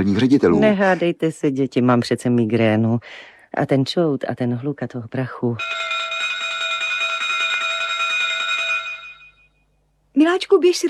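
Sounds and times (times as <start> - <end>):
speech: 0.0 - 5.9, 10.2 - 10.8
railway platform departure bell ringing: 5.6 - 9.7.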